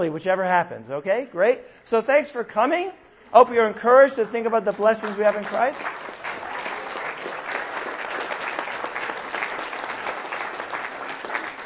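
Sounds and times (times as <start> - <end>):
speech: 0.0 - 6.4
audience clapping: 4.2 - 11.6.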